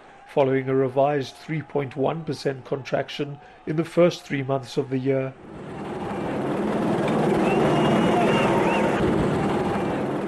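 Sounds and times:
speech: 0:00.4 - 0:05.7
police helicopters hovering over the city: 0:05.4 - 0:10.2.

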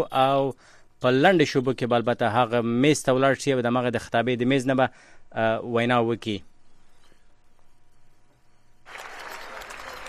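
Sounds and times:
speech: 0:00.0 - 0:06.5
crowd applause in the chamber: 0:08.9 - 0:10.0.

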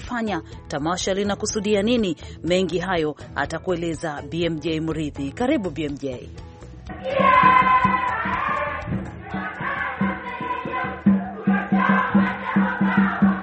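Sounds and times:
speech: 0:00.1 - 0:07.9
crowd at the Kenyan cultural festival in Atlanta chanting: 0:06.9 - 0:13.4
steady rhythmic pulse: 0:06.9 - 0:13.4.

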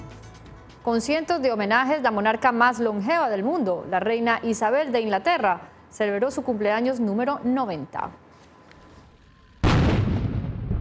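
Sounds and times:
speech: 0:00.8 - 0:08.2
cannon firing a ceremonial gun salute in London: 0:09.6 - 0:10.8.

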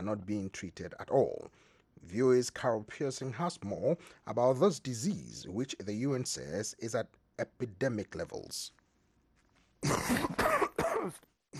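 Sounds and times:
speech: 0:00.0 - 0:08.8, 0:09.8 - 0:11.5
person coughing: 0:09.8 - 0:11.5.

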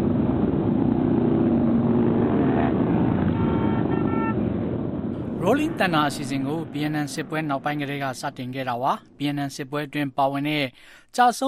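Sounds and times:
hundreds of thousands of motorcycles roaring at the Rolling Thunder rally in Washington DC: 0:00.0 - 0:09.0
horn-like tones: 0:03.3 - 0:04.4
speech: 0:05.5 - 0:11.4.

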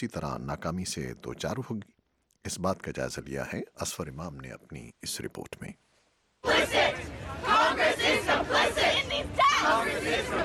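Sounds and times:
speech: 0:00.0 - 0:05.8
protesting students chanting slogans in front of the White House: 0:06.4 - 0:10.4.

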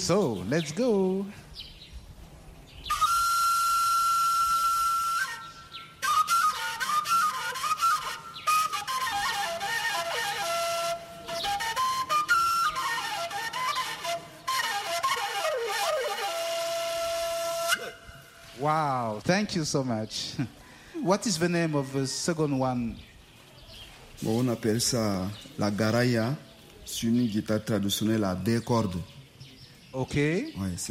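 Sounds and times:
speech: 0:00.0 - 0:01.7, 0:19.4 - 0:23.1, 0:24.2 - 0:29.2, 0:30.0 - 0:30.8
wombere four-hole pentatonic shepherd's flute: 0:02.9 - 0:18.7.

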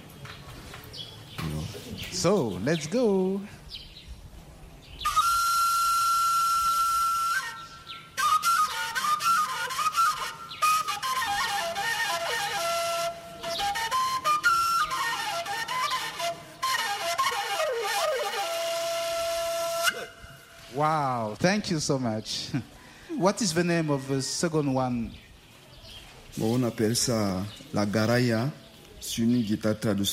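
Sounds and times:
speech: 0:02.2 - 0:03.6, 0:21.6 - 0:25.2, 0:26.4 - 0:30.1
wombere pentatonic four-hole shepherd's flute: 0:05.0 - 0:20.8.

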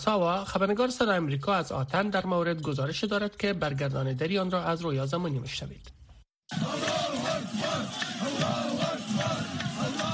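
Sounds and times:
speech: 0:00.0 - 0:06.8
crowd shouting cheers of joy in Greece: 0:06.5 - 0:10.1.

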